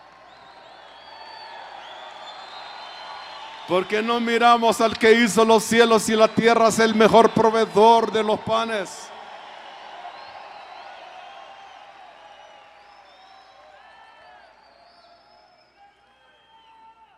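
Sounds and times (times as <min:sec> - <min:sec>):
audience shouting hallelujah: 0:01.2 - 0:12.3
speech: 0:03.7 - 0:09.1.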